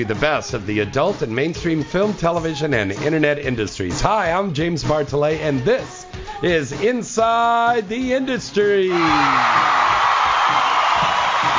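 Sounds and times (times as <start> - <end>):
speech: 0.0 - 9.8
audience applause: 8.9 - 11.5.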